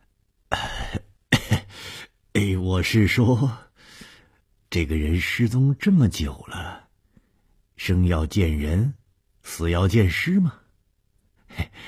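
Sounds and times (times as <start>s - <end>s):
old man coughing awkwardly with throat clearing: 0.5s - 1.8s
speech: 2.7s - 3.7s, 4.7s - 6.8s, 7.8s - 10.6s.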